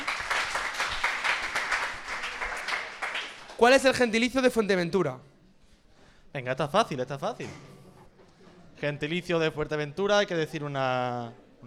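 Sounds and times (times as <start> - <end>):
audience applause: 0.0 - 3.8
speech: 3.6 - 5.3, 6.3 - 7.7, 8.8 - 11.6.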